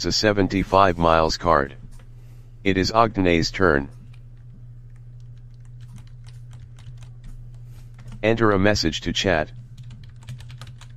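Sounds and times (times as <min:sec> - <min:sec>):
speech: 0:00.0 - 0:01.8, 0:02.6 - 0:04.0, 0:08.2 - 0:09.6
low constant hum: 0:00.0 - 0:10.9
typing on a computer keyboard: 0:04.1 - 0:07.2, 0:09.8 - 0:10.9.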